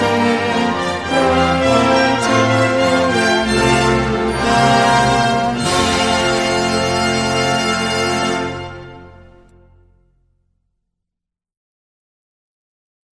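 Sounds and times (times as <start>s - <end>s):
tenor singing a Christmas carol: 0.0s - 8.7s.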